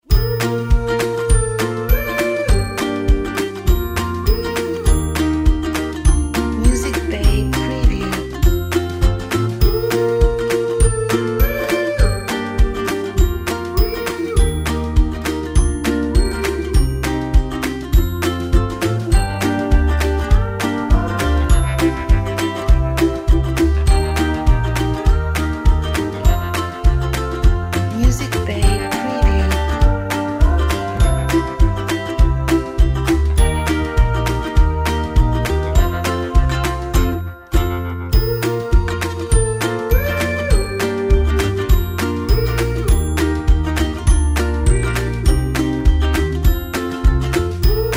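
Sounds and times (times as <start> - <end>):
happy upbeat ukulele music: 0.0 - 47.9.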